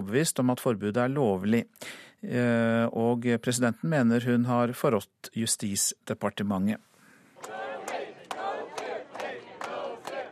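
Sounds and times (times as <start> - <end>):
speech: 0.0 - 7.6
large protest crowd chanting a slogan in rhythmic unison: 7.4 - 10.3.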